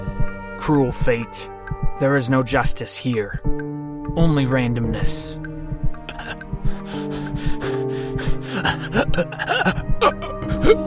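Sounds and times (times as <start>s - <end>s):
speech: 0.6s - 3.6s, 4.2s - 5.4s, 8.6s - 10.8s
person hyperventilating and gasping for breath: 6.1s - 10.8s.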